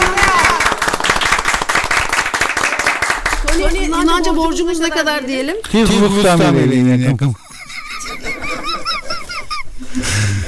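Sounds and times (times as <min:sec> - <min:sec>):
applause: 0:00.0 - 0:03.6
speech: 0:03.7 - 0:07.4
laughter: 0:07.1 - 0:10.4.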